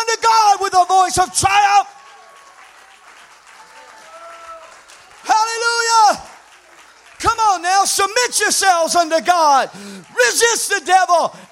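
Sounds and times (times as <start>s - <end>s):
crowd clapping hands: 0.0s - 11.5s
speech: 1.1s - 1.9s, 7.8s - 11.5s.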